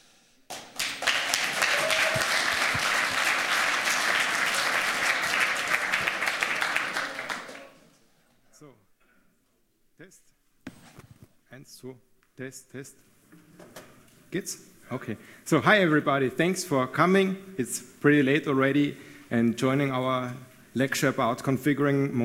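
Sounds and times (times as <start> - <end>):
room full of people applauding: 0.5 - 7.9
speech: 11.8 - 13.1, 14.3 - 22.2.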